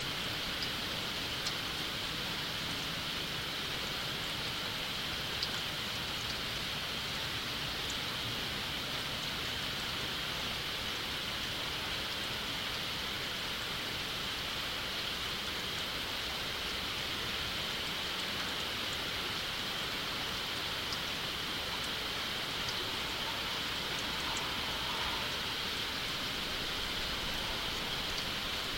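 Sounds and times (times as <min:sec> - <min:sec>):
rain: 0:00.0 - 0:28.7.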